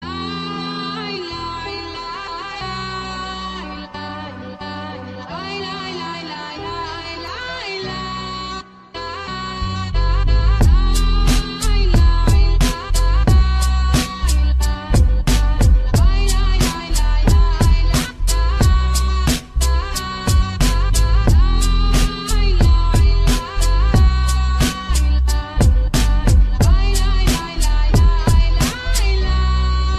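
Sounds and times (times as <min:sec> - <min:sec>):
music beat: 0:10.6 - 0:29.9.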